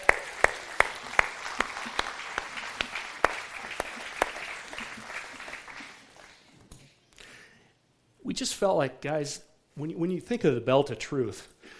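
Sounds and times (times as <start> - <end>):
audience applause: 0.0 - 6.6
speech: 8.4 - 11.5.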